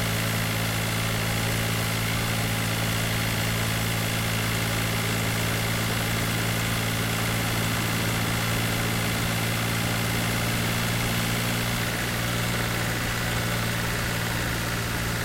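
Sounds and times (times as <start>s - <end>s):
2005 Smart Fortwo car driving slowly recorded onboard: 0.0s - 15.2s.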